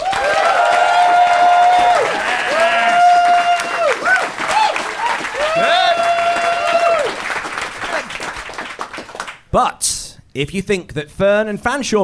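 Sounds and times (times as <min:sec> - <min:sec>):
crowd whooping and cheering: 0:00.0 - 0:08.2
live audience applauding: 0:00.0 - 0:09.5
speech: 0:09.5 - 0:09.8, 0:10.4 - 0:12.0.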